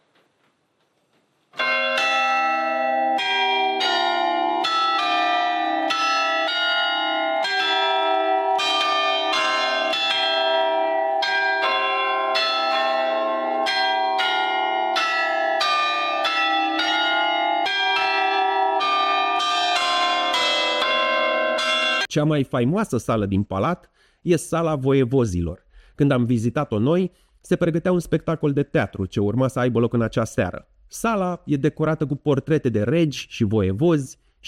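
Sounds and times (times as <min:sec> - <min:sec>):
tower clock mechanism chiming a melody on bells: 0:01.6 - 0:22.1
speech: 0:22.2 - 0:34.4.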